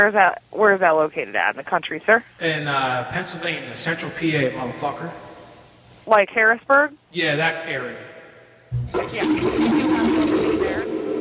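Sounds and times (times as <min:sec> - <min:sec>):
speech: 0:00.0 - 0:05.3, 0:06.1 - 0:08.1, 0:09.0 - 0:10.2
toilet flushing in a nearby bathroom: 0:08.8 - 0:11.1.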